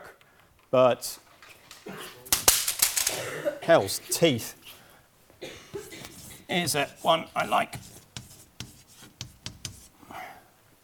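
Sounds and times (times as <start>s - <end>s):
speech: 0.7s - 1.2s, 3.4s - 4.7s, 6.5s - 7.9s
pen writing a word by hand: 5.7s - 10.0s.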